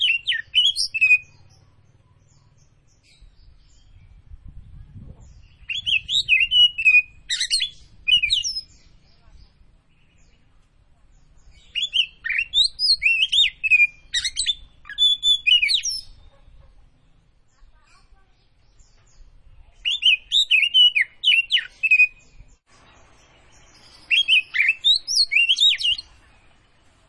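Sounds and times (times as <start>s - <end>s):
Oriental magpie-robin of the Tretes form singing vigorously with whistled phrases: 0.0s - 1.5s, 5.3s - 9.4s, 11.5s - 16.6s, 19.5s - 22.3s, 23.8s - 26.1s.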